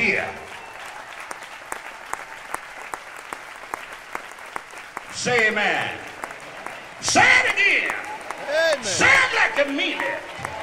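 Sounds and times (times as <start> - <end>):
speech: 0.0 - 0.4, 5.2 - 6.1, 7.0 - 10.3
audience standing applause, hand clapping: 0.0 - 10.6.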